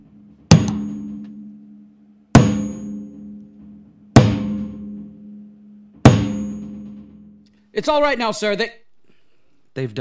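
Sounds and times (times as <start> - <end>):
sledgehammer striking metal door wing bolts: 0.0 - 1.7, 2.3 - 7.4
speech: 7.8 - 8.8, 9.8 - 10.0.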